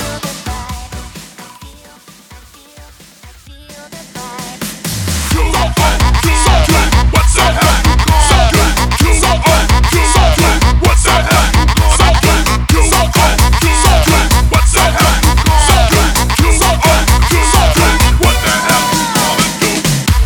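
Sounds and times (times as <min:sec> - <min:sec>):
130 bpm music track: 0:05.2 - 0:20.2.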